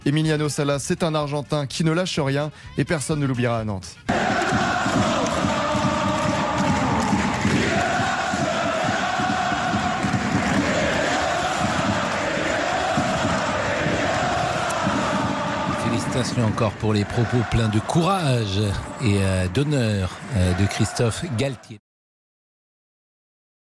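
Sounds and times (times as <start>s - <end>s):
speech: 0.1s - 5.6s, 16.2s - 21.8s
football supporters singing a match chant: 4.1s - 21.8s.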